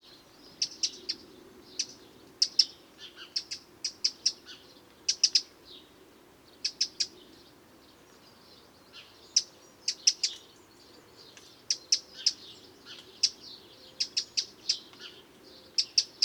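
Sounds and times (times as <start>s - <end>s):
Eurasian wren ticking calls: 0.6s - 5.6s, 6.6s - 7.3s, 9.0s - 16.2s.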